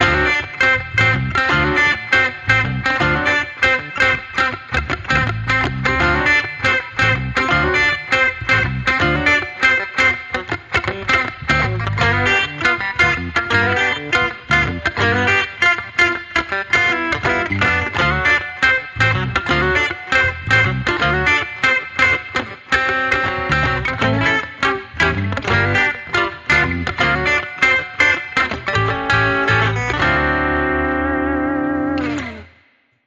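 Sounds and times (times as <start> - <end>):
instrumental music without drums: 0.0 - 33.0.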